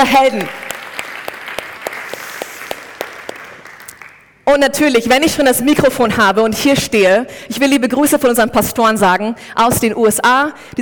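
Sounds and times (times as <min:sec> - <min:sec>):
speech: 0:00.0 - 0:00.6, 0:04.5 - 0:10.8
crowd applause: 0:00.6 - 0:04.3.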